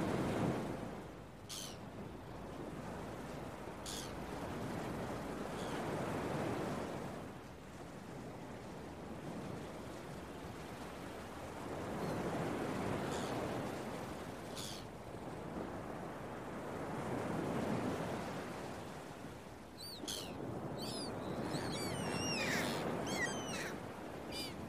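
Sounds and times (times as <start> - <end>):
ocean waves rolling: 0.0 - 24.6
gulls calling: 19.8 - 24.6.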